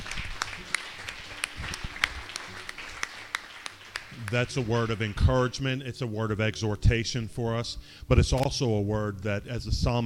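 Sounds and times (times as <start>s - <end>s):
scattered applause: 0.0s - 5.5s
audience hand clapping: 0.0s - 5.7s
speech: 4.3s - 10.0s.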